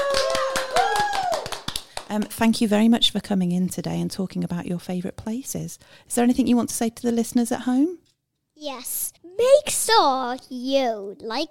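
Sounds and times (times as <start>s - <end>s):
person cheering: 0.0s - 1.6s
lively applause: 0.0s - 2.2s
speech: 2.1s - 11.4s.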